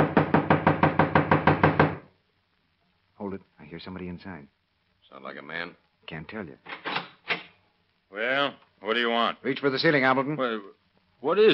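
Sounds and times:
knocking on a door: 0:00.0 - 0:02.1
speech: 0:03.4 - 0:06.9, 0:08.1 - 0:11.5.

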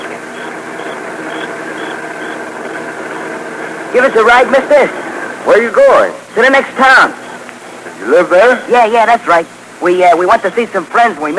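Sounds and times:
faint high repeating chirp: 0:00.0 - 0:02.4
car engine droning on a road at night: 0:00.0 - 0:05.7
speech: 0:03.9 - 0:07.2, 0:08.0 - 0:11.3.

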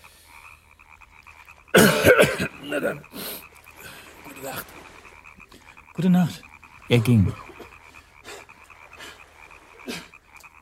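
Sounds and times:
raspy coughing: 0:01.7 - 0:03.1, 0:09.8 - 0:10.2
speech: 0:02.0 - 0:03.3, 0:04.4 - 0:04.9, 0:06.0 - 0:07.5.

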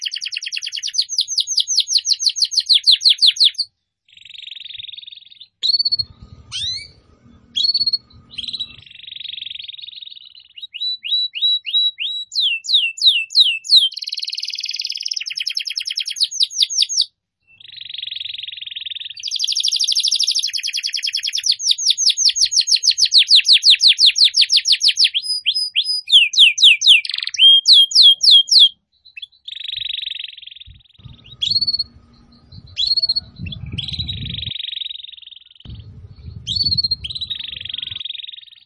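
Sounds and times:
Atlantic canary song: 0:00.0 - 0:38.6
low rumbling noise: 0:05.9 - 0:08.8, 0:30.7 - 0:34.5, 0:35.7 - 0:38.0.

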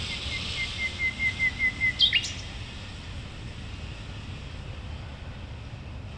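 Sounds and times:
common nightingale singing at a playground in Berlin: 0:00.1 - 0:02.5.

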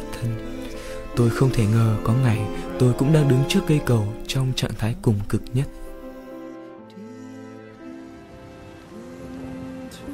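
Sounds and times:
speech: 0:00.2 - 0:00.5, 0:01.2 - 0:05.8
rain falling: 0:07.9 - 0:10.1.

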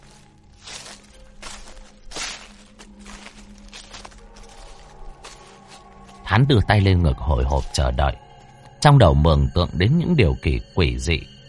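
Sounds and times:
footsteps crunching on dry leaves: 0:00.0 - 0:06.4
speech: 0:06.4 - 0:11.4.

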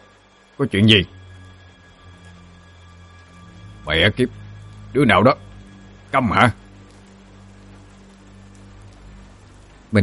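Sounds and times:
heavy rain falling: 0:00.0 - 0:10.0
speech: 0:00.6 - 0:01.2, 0:03.9 - 0:05.5, 0:06.1 - 0:06.6.

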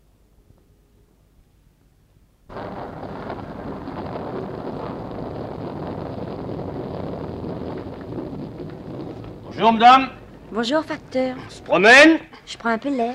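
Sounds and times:
distant thunder rumbling from a gathering storm: 0:02.5 - 0:12.4
speech: 0:09.6 - 0:13.1.

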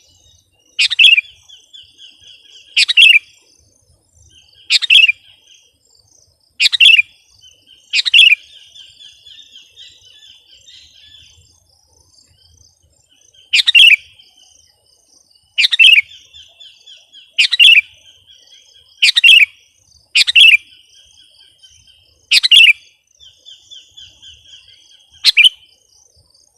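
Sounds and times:
sooty-headed bulbul twittering: 0:00.8 - 0:01.5, 0:02.7 - 0:03.3, 0:04.6 - 0:05.2, 0:06.6 - 0:07.1, 0:07.9 - 0:08.5, 0:13.4 - 0:14.1, 0:15.6 - 0:16.2, 0:17.4 - 0:18.0, 0:19.0 - 0:19.5, 0:20.2 - 0:20.6, 0:22.3 - 0:22.8, 0:25.2 - 0:25.6.

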